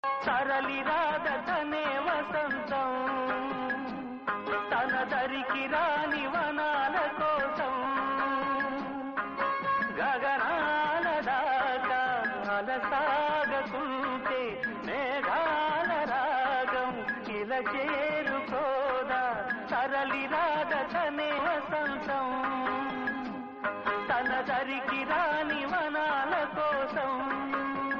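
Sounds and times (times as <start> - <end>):
Rudra Veena playing: 0.1 - 27.9.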